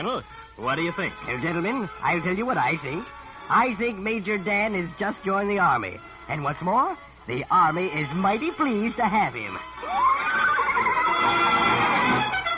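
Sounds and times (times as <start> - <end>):
speech: 0.0 - 10.2
horse whinnying: 9.8 - 12.4.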